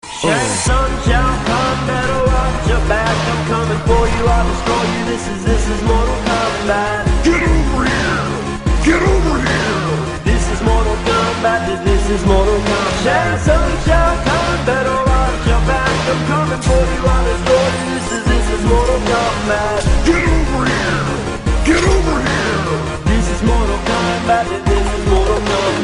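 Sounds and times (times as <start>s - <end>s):
rap music: 0.0s - 25.8s.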